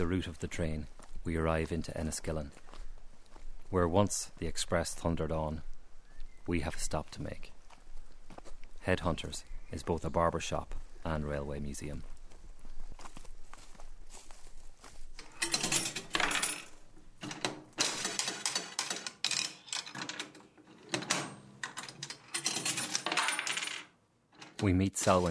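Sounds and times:
speech: 0:00.0 - 0:02.6, 0:03.7 - 0:05.7, 0:06.4 - 0:07.5, 0:08.8 - 0:12.1, 0:24.6 - 0:25.2
old penny slot machine whirring and clunking: 0:15.2 - 0:23.8
coins clattering out of a slot machine: 0:15.2 - 0:25.2.

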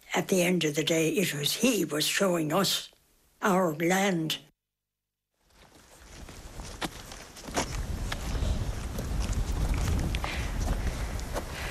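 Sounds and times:
speech: 0:00.2 - 0:04.5
footsteps walking up a farm track in the Burren: 0:05.4 - 0:11.7
gusty wind: 0:05.8 - 0:11.7.

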